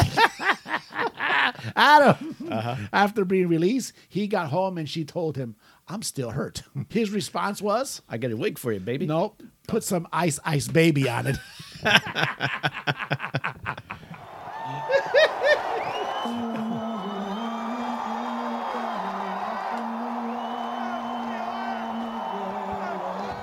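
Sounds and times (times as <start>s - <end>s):
laughter: 0.0s - 2.7s, 11.0s - 23.4s
speech: 1.7s - 13.8s
crowd of fans yelling and cheering: 14.0s - 23.4s.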